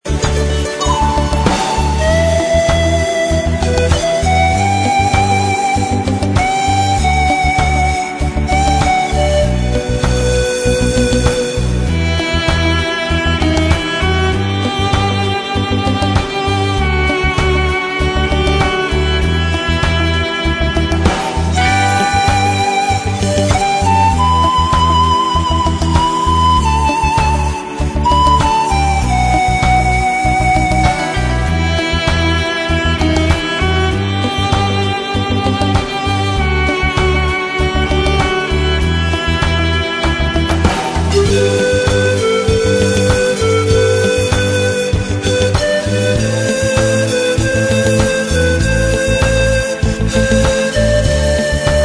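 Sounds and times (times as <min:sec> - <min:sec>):
ocarina melody: 0:00.0 - 0:51.8.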